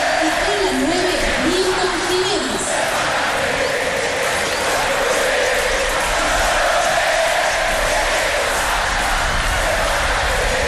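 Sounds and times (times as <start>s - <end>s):
football crowd singing and chanting in a stadium: 0.0s - 10.6s.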